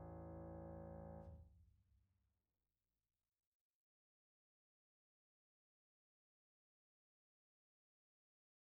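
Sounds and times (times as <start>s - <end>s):
piano: 0.0s - 1.3s.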